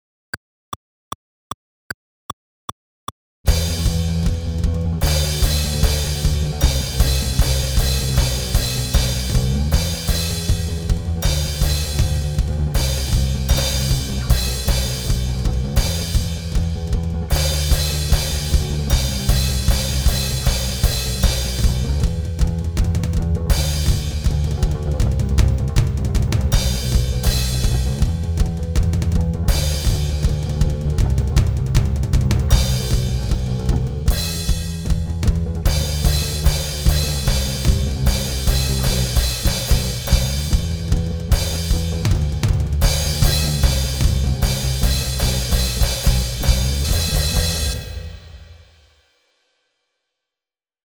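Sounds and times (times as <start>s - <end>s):
solo backing track: 3.5s - 48.4s.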